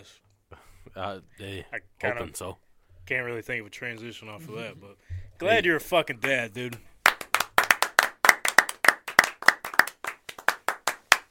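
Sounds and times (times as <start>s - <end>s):
speech: 0.0s - 0.2s, 1.0s - 6.9s
applause: 6.2s - 11.3s.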